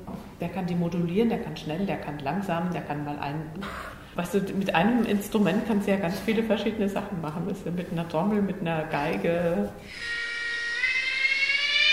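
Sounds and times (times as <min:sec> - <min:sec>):
speech: 0:00.4 - 0:10.2
cicada singing: 0:10.0 - 0:11.9.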